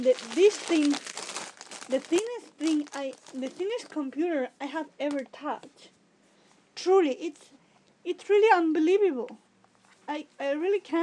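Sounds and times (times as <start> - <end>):
speech: 0.0 - 1.2, 1.9 - 6.0, 6.8 - 9.4, 10.1 - 11.0
packaging crinkling as a new MacBook Air is unwrapped: 0.0 - 4.0.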